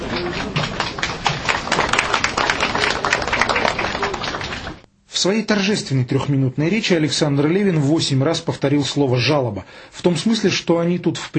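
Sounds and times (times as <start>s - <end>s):
applause at a ribbon-cutting ceremony: 0.0s - 4.8s
speech: 5.2s - 11.3s.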